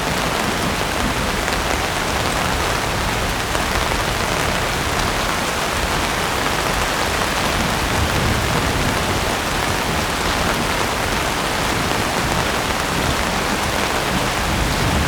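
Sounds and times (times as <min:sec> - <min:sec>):
constant rain storm: 0:00.0 - 0:15.0
distant thunder: 0:07.9 - 0:15.0.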